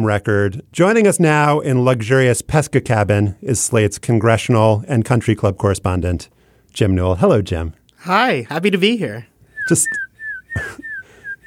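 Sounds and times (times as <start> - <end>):
speech: 0.0 - 10.0, 10.6 - 10.9
person whistling imitation birdsong: 9.6 - 11.4.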